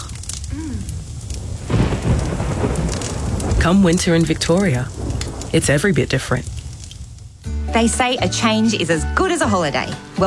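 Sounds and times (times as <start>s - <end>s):
low rumble of thunder: 0.0s - 8.0s
heavy rain: 0.0s - 10.2s
speech: 3.6s - 6.6s, 7.7s - 10.2s.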